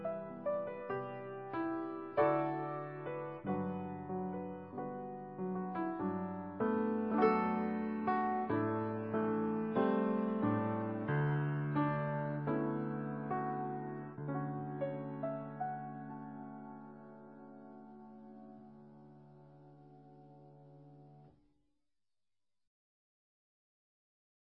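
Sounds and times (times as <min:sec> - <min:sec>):
piano playing in a piano bar: 0:00.0 - 0:21.2.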